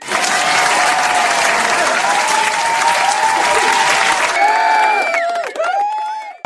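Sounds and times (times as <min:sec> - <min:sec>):
people cheering: 0:00.0 - 0:06.4.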